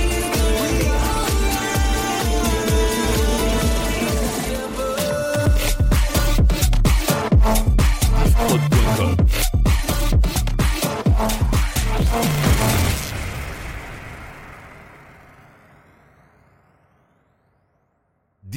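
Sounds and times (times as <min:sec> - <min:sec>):
EDM and IDM medley: 0:00.0 - 0:12.8.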